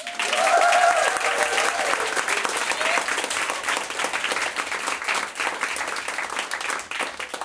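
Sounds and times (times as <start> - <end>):
live audience whooping at a recorded show: 0.0 - 3.6
live audience clapping at a recorded show: 0.0 - 7.4.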